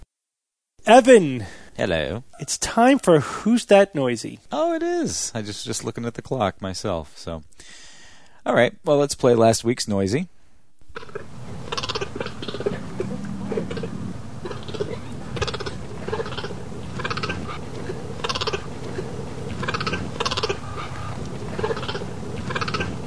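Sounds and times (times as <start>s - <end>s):
speech: 0.9s - 7.8s, 8.4s - 10.4s
male cheetah barking: 2.3s - 3.2s, 10.9s - 23.0s
low rumble: 11.0s - 23.0s.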